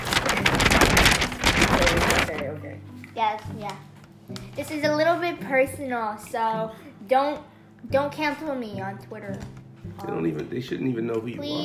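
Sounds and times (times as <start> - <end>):
paper being rustled and crinkled near microphone: 0.0 - 2.4
speech: 3.2 - 11.6.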